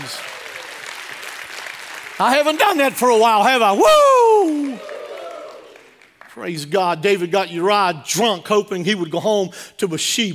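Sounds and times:
crowd clapping: 0.0s - 7.1s
speech: 2.2s - 5.0s, 6.4s - 10.3s
voices shouting and cheering: 2.2s - 5.8s.

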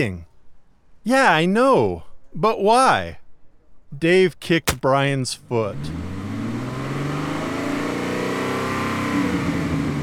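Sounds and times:
speech: 0.0s - 0.3s, 1.0s - 3.2s, 3.9s - 6.1s
Camaro engine roaring as it approaches: 5.7s - 10.0s.

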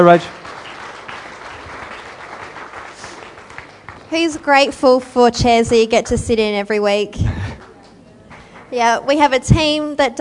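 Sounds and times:
speech: 0.0s - 0.4s, 4.1s - 7.3s, 8.7s - 10.1s
audience clapping: 0.0s - 4.9s, 7.4s - 9.4s.

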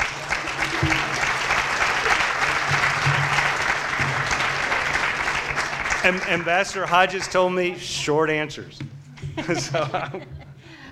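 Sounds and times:
laughter: 0.0s - 3.4s, 9.2s - 10.9s
audience applause: 0.0s - 7.7s
speech: 6.0s - 10.3s.

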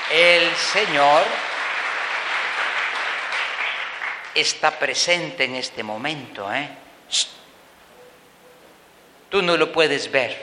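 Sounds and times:
audience applause: 0.0s - 4.4s
speech: 0.1s - 1.5s, 4.4s - 7.4s, 9.3s - 10.4s.

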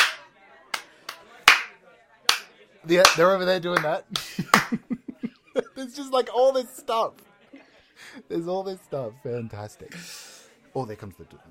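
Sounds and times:
group clapping in rhythm: 0.0s - 4.8s
faint murmur of voices: 0.0s - 11.4s
speech: 2.8s - 5.0s, 5.8s - 7.3s, 8.0s - 10.2s, 10.8s - 11.4s
laughter: 4.1s - 6.0s.

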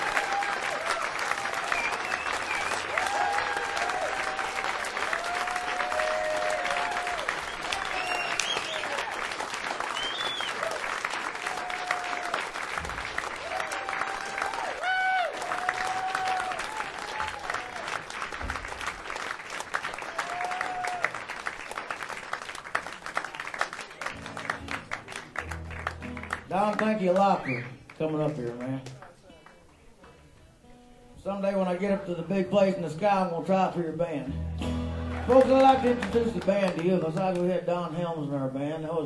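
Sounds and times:
audience cheers: 0.0s - 18.2s, 19.8s - 21.8s, 35.0s - 36.8s
large audience clapping: 0.0s - 29.7s, 34.6s - 37.6s
audience whistles: 1.6s - 3.0s, 7.4s - 9.1s, 9.9s - 10.7s, 27.4s - 27.8s
speech: 26.8s - 29.0s, 31.4s - 34.5s, 35.3s - 39.0s.

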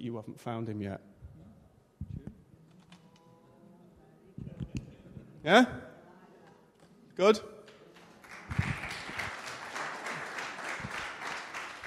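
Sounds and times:
speech: 0.0s - 1.2s, 5.4s - 5.9s, 7.2s - 7.6s
audience applause: 8.1s - 11.8s.

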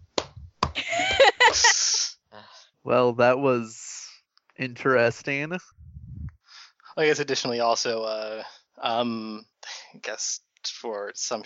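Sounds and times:
hand claps: 0.1s - 1.7s
laughter: 0.8s - 2.0s
speech: 2.8s - 3.8s, 4.6s - 5.8s, 7.0s - 11.4s.

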